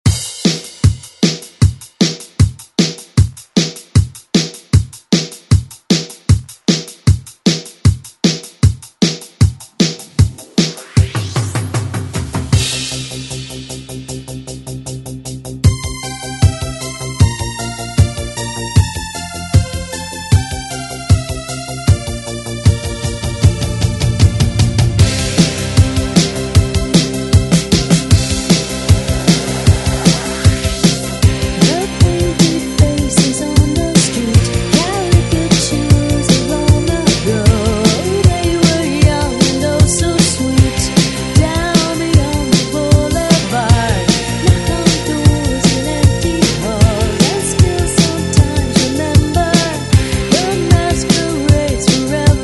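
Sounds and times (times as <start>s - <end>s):
eighties drum beat: 0.0s - 14.3s, 15.6s - 52.4s.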